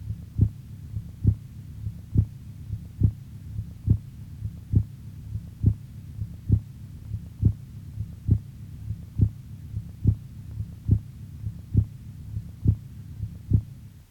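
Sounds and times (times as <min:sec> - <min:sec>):
heart sounds with accentuated second tone over aorta: 0:00.0 - 0:13.8
faint constant hum: 0:00.0 - 0:14.0.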